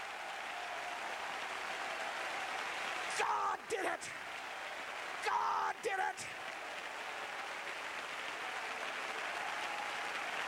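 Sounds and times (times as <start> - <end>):
audience clapping: 0.0 - 10.4
speech: 3.2 - 4.3, 5.2 - 6.4.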